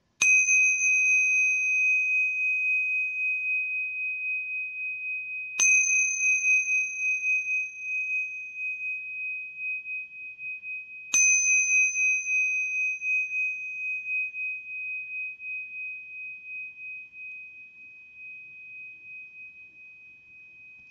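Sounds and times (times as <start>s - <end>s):
plain tingsha cymbals: 0.0s - 20.8s
Tibetan singing bowls: 0.2s - 20.8s.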